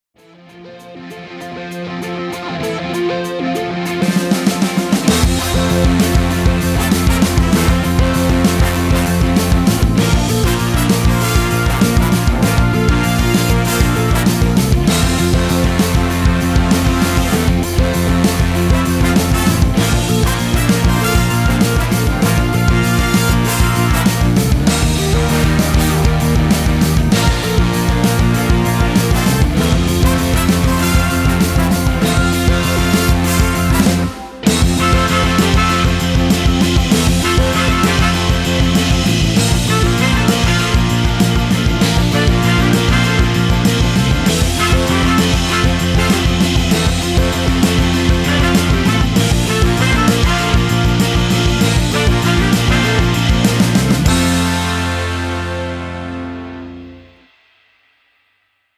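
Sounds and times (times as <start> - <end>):
band jam session: 0.8 - 57.2.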